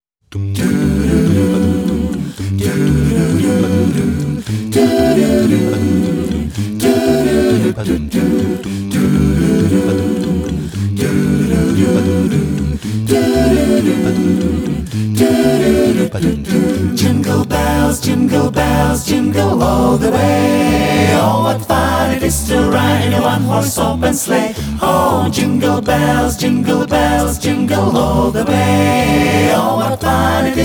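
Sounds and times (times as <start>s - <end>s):
Christmas song: 0.5s - 30.6s.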